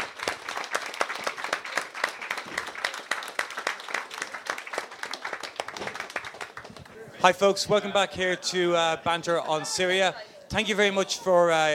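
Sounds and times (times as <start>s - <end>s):
audience applause: 0.0s - 7.0s
speech: 7.2s - 11.7s.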